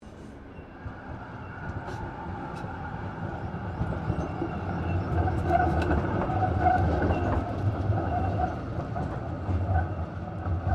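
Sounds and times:
Melbourne Z3 Class tram passing outside: 0:00.0 - 0:10.7.

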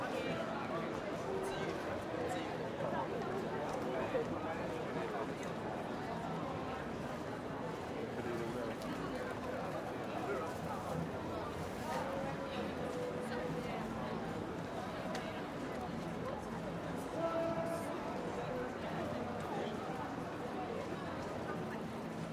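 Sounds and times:
medium crowd in European city street: 0:00.0 - 0:22.3.

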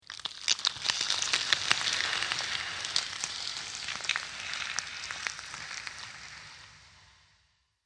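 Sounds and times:
dragon monster hatching from eggs: 0:00.0 - 0:06.3.

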